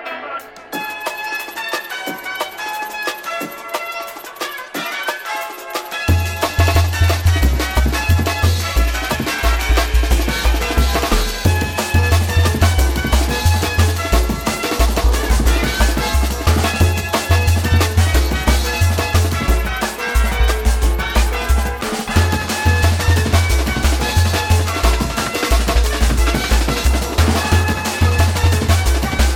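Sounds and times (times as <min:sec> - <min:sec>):
beats: 0:00.4 - 0:29.3.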